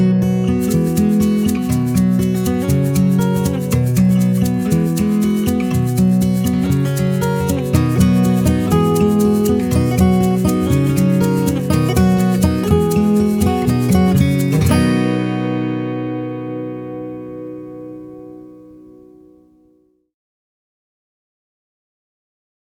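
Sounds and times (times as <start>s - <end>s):
backing music: 0.6s - 17.9s.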